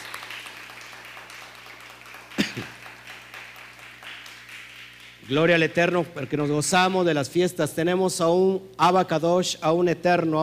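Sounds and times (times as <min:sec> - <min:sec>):
audience applause: 0:00.0 - 0:05.4
speech: 0:05.3 - 0:10.4.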